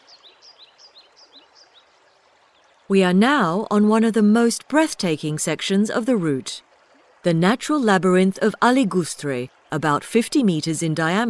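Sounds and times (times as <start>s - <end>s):
bird chirping in the gardens of the Inca mill: 0.0s - 2.8s
running water in the gardens of the Inca mill: 0.0s - 11.2s
speech: 2.9s - 11.2s.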